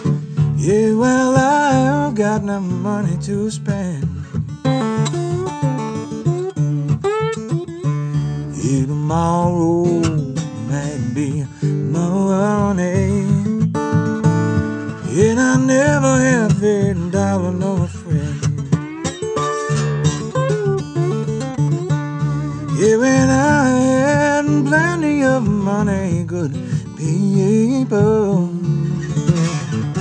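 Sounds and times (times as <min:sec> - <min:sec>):
blues music: 0:00.0 - 0:29.9.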